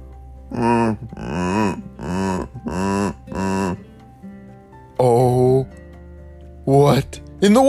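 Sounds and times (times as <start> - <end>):
speech: 0.5 - 1.9, 6.8 - 7.6
dinosaur roars: 0.5 - 3.9.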